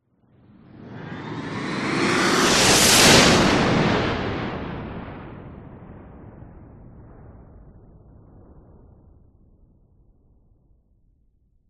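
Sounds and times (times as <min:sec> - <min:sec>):
science fiction space fighter flying past very fast: 0:00.6 - 0:05.3.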